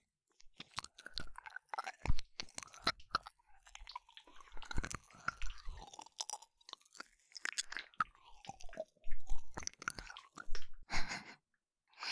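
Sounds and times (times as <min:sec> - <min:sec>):
ASMR ear licking sounds: 0:00.5 - 0:11.2.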